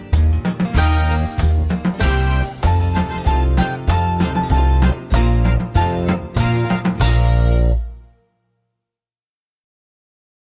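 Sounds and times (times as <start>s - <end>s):
Slovakian folk song on strings: 0.0s - 8.0s.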